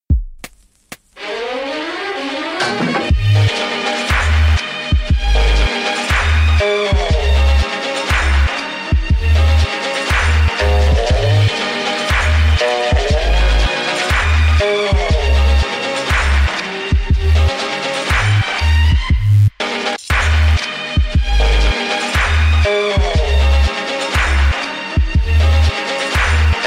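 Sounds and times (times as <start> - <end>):
Turkish music mix: 0.1 - 26.6.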